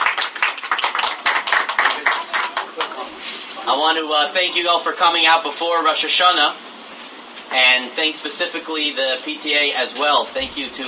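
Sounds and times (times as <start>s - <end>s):
crowd applause: 0.0s - 3.2s
speech: 3.7s - 6.6s, 7.5s - 10.8s.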